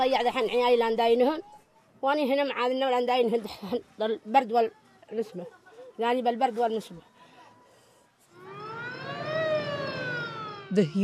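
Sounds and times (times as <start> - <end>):
speech: 0.0 - 7.1, 10.7 - 11.0
ambulance siren: 8.3 - 11.0.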